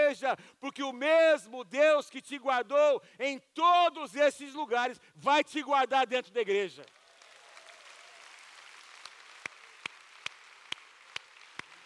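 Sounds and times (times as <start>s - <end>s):
speech: 0.1s - 7.0s
audience applause: 6.9s - 11.8s.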